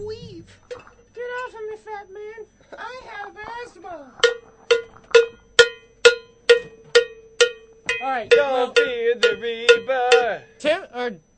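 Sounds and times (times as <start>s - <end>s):
cowbell being played: 4.2s - 10.6s.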